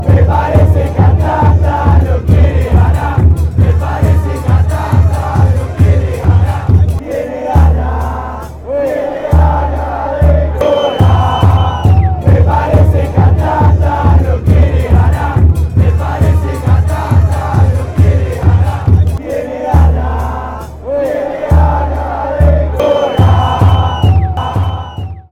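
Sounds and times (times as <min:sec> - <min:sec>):
Atlanta fans chanting: 0:00.0 - 0:25.2.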